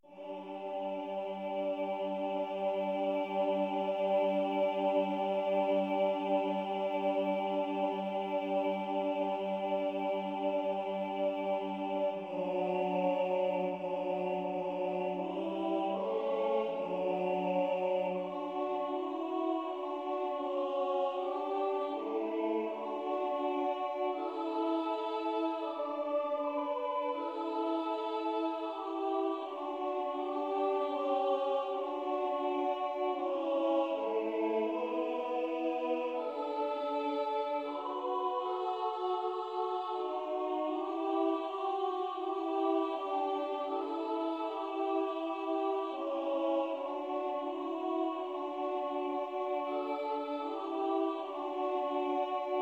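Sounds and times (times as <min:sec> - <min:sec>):
soprano and alto voices: 0:00.0 - 0:52.6.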